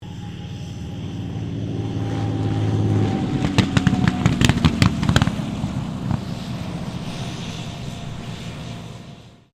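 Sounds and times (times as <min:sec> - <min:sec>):
CA-18 Mustang aircraft idling on land: 0:00.0 - 0:09.5.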